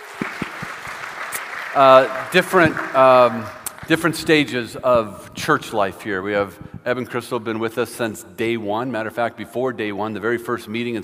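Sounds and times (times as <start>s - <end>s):
soft scattered clapping from a crowd: 0.0s - 4.9s
speech: 1.8s - 11.0s.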